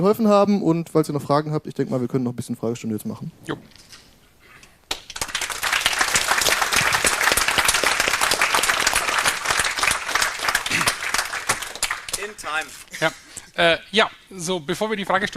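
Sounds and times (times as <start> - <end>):
speech: 0.0 - 4.0, 12.6 - 15.3
audience applause: 4.9 - 12.8.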